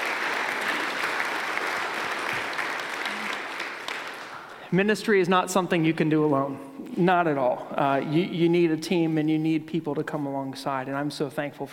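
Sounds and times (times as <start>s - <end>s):
applause: 0.0s - 4.6s
speech: 4.7s - 11.7s.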